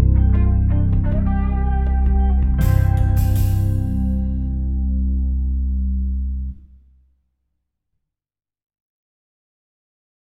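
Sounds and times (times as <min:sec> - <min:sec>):
song bass line: 0:00.0 - 0:06.9.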